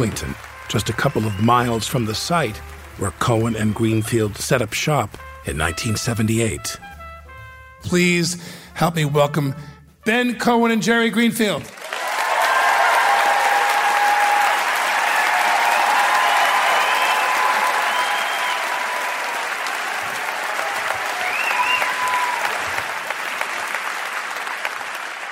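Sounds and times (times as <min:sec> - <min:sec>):
audience applause: 0:00.0 - 0:05.1, 0:11.7 - 0:25.3
speech: 0:00.0 - 0:06.9, 0:07.8 - 0:11.8
faint whoops and cheers: 0:11.9 - 0:23.0.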